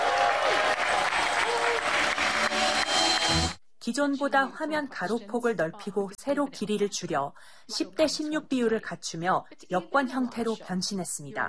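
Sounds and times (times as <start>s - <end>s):
crowd applause: 0.0s - 3.6s
speech: 3.9s - 11.4s.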